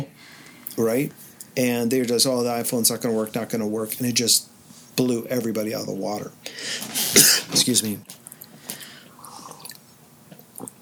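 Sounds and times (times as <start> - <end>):
speech: 0.8 - 8.2
person sipping a drink: 8.2 - 10.8
quiet swallowing noises: 8.3 - 10.8.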